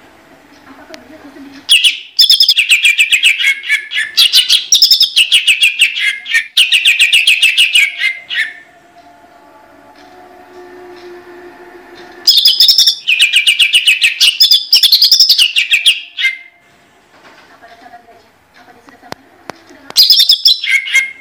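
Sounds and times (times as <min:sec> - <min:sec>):
greater green leafbird song: 0:01.6 - 0:08.6, 0:12.3 - 0:16.5, 0:20.0 - 0:21.1.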